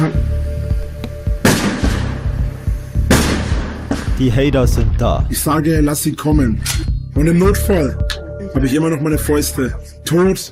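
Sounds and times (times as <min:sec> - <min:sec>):
speech: 0:00.0 - 0:00.3, 0:04.2 - 0:10.5
firework bangs: 0:01.4 - 0:02.4, 0:03.0 - 0:04.2.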